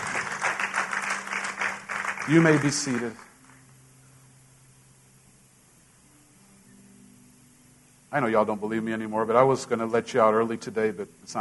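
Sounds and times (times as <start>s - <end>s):
audience hand clapping: 0.0s - 3.7s
speech: 2.3s - 3.3s, 8.1s - 11.4s.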